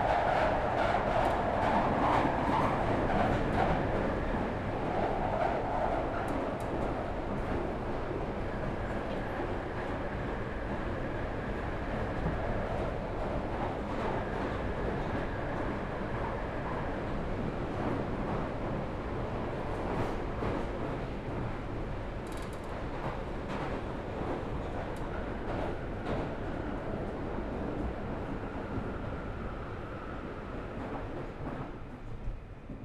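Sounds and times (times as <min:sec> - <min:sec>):
empty Underground train rolling with low rumble and rattle: 0:00.0 - 0:32.8.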